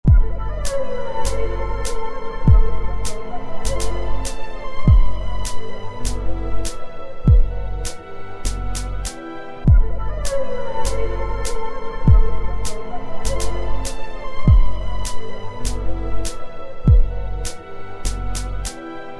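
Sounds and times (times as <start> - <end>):
minimal music remix: 0.0 - 19.1.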